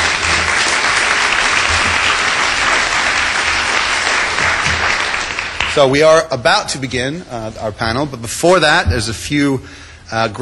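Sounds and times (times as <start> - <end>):
audience applause for panelists: 0.0 - 5.8
speech: 5.8 - 10.3.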